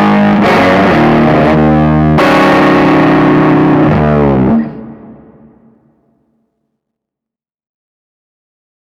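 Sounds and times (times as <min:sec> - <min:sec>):
mercury tube fuzz: 0:00.0 - 0:05.9.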